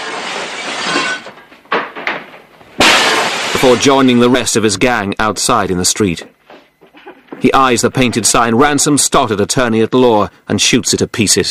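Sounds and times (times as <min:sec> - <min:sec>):
chair smashing through an office window: 0:00.0 - 0:04.4
speech: 0:03.6 - 0:06.4, 0:07.4 - 0:11.4.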